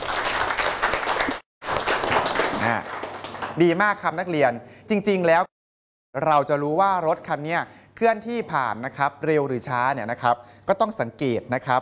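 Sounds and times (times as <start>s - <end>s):
students clapping in a classroom: 0.0s - 3.8s
speech: 3.6s - 11.8s.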